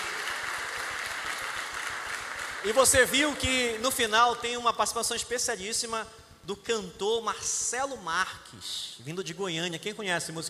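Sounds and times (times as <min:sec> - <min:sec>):
audience clapping: 0:00.0 - 0:04.4
speech: 0:02.6 - 0:10.4.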